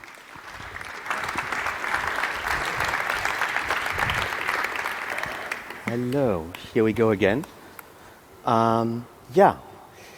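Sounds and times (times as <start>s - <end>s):
crowd applauding: 0.0s - 6.6s
speech: 5.9s - 7.6s, 8.4s - 9.7s.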